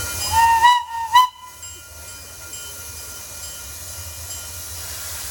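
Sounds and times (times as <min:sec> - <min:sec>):
train whistle-like squeal at McCormick-Stillman Railroad Park: 0:00.2 - 0:01.6.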